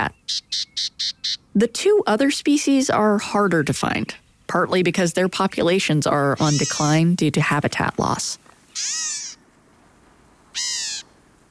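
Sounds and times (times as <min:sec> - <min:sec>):
black-capped gnatcatcher mewing calls: 0:00.0 - 0:01.6, 0:06.3 - 0:07.0, 0:08.6 - 0:09.5, 0:10.5 - 0:11.2
speech: 0:00.0 - 0:09.2.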